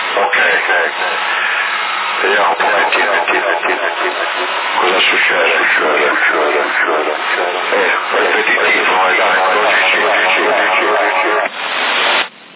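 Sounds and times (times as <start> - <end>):
voice over a CB radio transmission with an echo effect: 0.0 - 11.5
speech: 0.2 - 1.5, 2.2 - 12.2.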